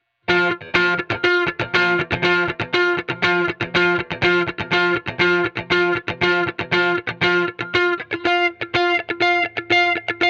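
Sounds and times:
guitar: 0.2 - 10.2.

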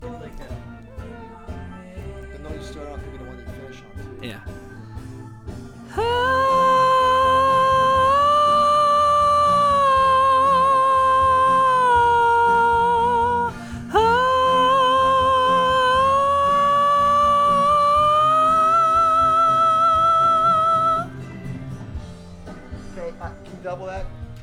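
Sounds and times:
doubled vocals: 5.9 - 21.1.

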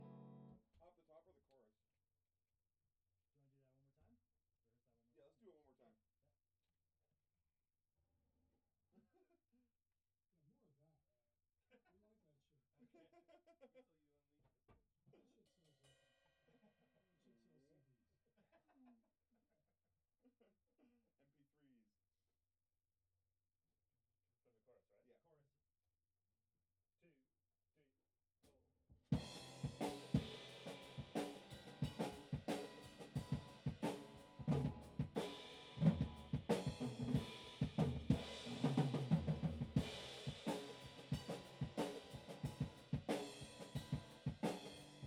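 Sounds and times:
bass through amp: 29.2 - 45.0.

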